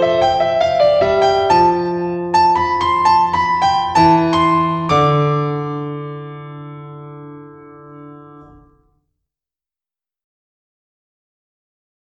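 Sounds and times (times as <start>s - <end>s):
solo piano: 0.0s - 8.9s.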